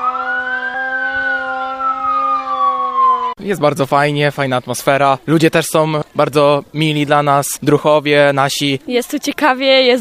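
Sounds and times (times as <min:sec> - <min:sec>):
camp alarm siren wailing: 0:00.0 - 0:03.4
speech: 0:03.4 - 0:09.9.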